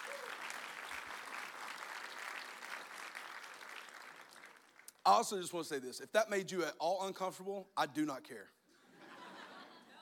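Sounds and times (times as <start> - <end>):
audience applauding: 0.0 - 4.9
speech: 5.0 - 8.6.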